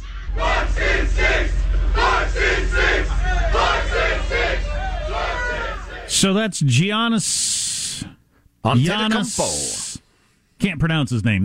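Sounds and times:
constant low rumble: 0.0 - 6.2
crowd of fans cheering at a drive-through: 0.0 - 6.2
speech: 6.1 - 9.8, 10.6 - 11.4.

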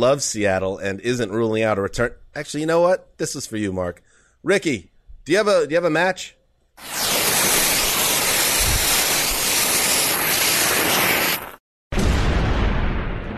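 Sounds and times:
speech: 0.0 - 7.0
explosion sound effect: 6.8 - 9.1, 10.1 - 13.3.

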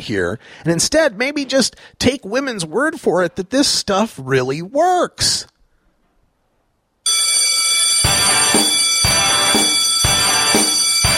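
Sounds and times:
speech: 0.0 - 5.5
bell ringing: 7.1 - 11.1.

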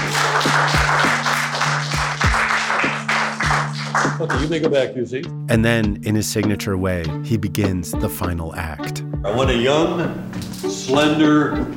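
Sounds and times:
audience applause: 0.0 - 4.5
speech: 4.2 - 11.7.

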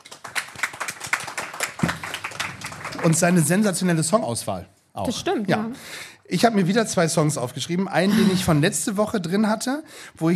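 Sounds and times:
applause: 0.0 - 3.8
speech: 3.0 - 10.3.

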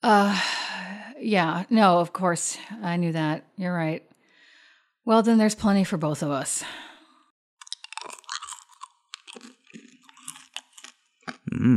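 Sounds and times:
speech: 0.0 - 0.6, 1.2 - 4.1, 5.0 - 6.9, 11.6 - 11.7
chewing crunchy roasted crickets: 7.6 - 11.7.

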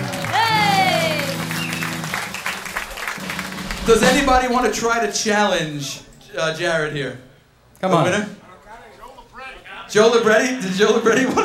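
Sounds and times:
audience applause: 0.0 - 3.9
speech: 3.9 - 8.4, 9.9 - 11.4.

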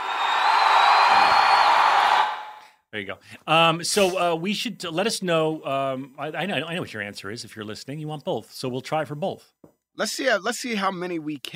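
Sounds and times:
audience applause: 0.0 - 2.6
speech: 3.0 - 11.5.

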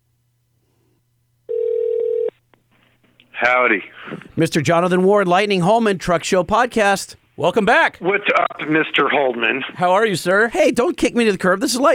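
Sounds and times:
telephone dialing tone beep: 1.5 - 2.3
speech: 3.4 - 11.9.

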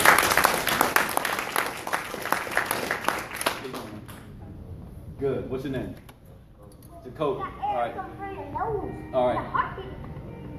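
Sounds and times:
audience applause: 0.0 - 4.2
speech: 5.2 - 6.1, 7.0 - 10.2.

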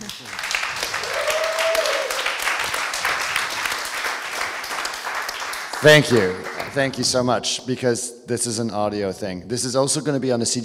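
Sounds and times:
crowd applause: 0.0 - 7.1
speech: 5.8 - 10.6.

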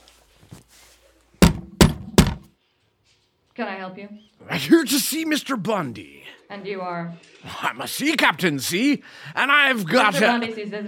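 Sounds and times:
knocking on a door: 1.4 - 2.5
speech: 3.6 - 10.8.

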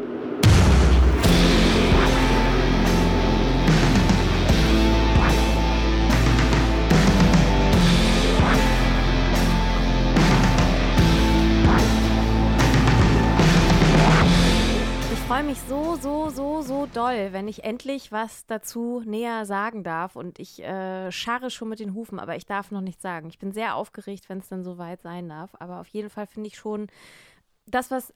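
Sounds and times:
drum recording: 0.0 - 17.6
speech: 16.9 - 28.1.

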